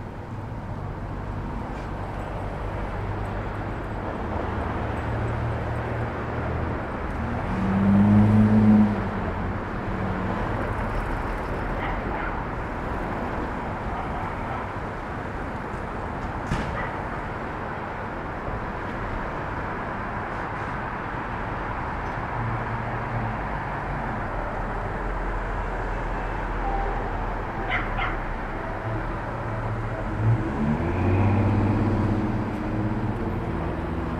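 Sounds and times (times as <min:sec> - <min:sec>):
city traffic rumble on a Brooklyn rooftop at Starr Street and Irving Avenue: 0:00.0 - 0:34.1
vehicle passing: 0:04.3 - 0:11.9, 0:27.7 - 0:34.1.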